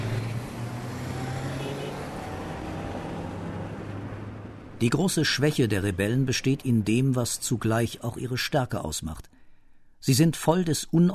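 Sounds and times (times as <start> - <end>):
fighters' cars speeding away: 0.0 - 6.0
speech: 4.8 - 9.4, 10.0 - 11.1.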